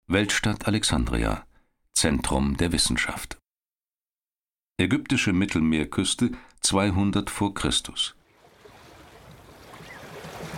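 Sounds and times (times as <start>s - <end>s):
speech: 0.1s - 3.4s, 4.8s - 8.2s
light wind: 8.4s - 10.5s
water washing as a ship glides through the Mediterranean sea off the Egyptian coast: 8.4s - 10.5s.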